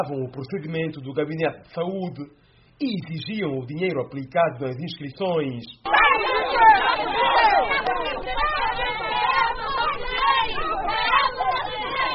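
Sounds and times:
speech: 0:00.0 - 0:07.2
protesters shouting at the gates: 0:05.8 - 0:12.1.

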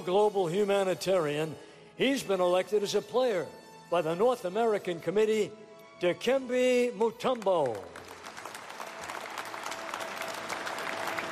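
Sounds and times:
speech: 0:00.0 - 0:08.0
audience applause at the Basketball Hall of Fame induction ceremony: 0:07.6 - 0:11.3.

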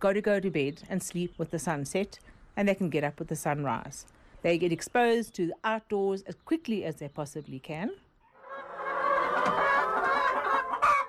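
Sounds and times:
speech: 0:00.0 - 0:08.0
hens clucking in a barn: 0:08.2 - 0:11.0.

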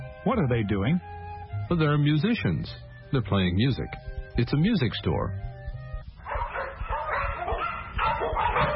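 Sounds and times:
speech: 0:00.3 - 0:05.5
dogs barking and yipping: 0:06.0 - 0:08.7.

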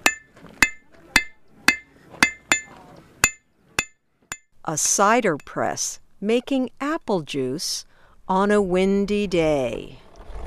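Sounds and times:
blacksmith's hammer striking hot metal: 0:00.0 - 0:04.4
speech: 0:04.7 - 0:10.0.

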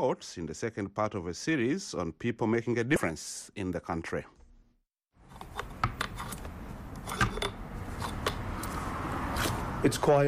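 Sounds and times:
speech: 0:00.0 - 0:04.4, 0:09.8 - 0:10.2
muffled street traffic heard inside a shop: 0:05.4 - 0:10.2.

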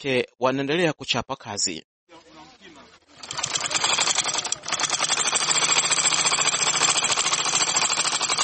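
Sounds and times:
speech: 0:00.0 - 0:02.3
tailor's sewing machine running in a tailoring workshop: 0:03.2 - 0:08.4.

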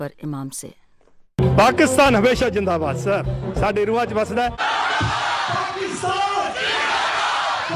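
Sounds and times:
speech: 0:00.0 - 0:00.8, 0:01.6 - 0:05.3
crowd chanting a patriotic slogan at a Pakistan Day celebration: 0:04.5 - 0:07.7.

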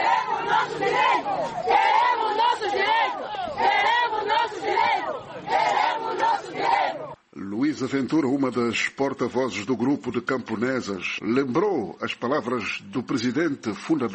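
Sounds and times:
women shouting slogans at the door of the municipal administration: 0:00.0 - 0:07.2
speech: 0:07.8 - 0:14.1.

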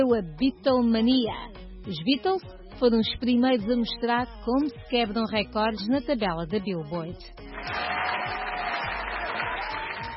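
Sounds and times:
speech: 0:00.0 - 0:08.4
applause from a sizable crowd: 0:07.5 - 0:10.1.

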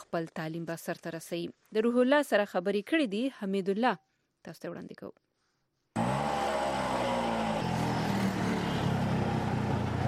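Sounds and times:
speech: 0:00.1 - 0:05.2
auto rickshaw engine starting and running: 0:06.0 - 0:10.0.

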